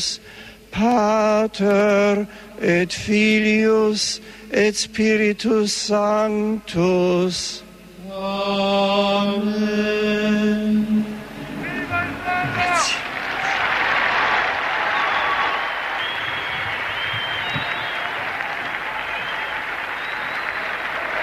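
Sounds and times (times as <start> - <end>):
speech: 0.0 - 11.1
thunderous applause for the Pope: 11.3 - 21.2.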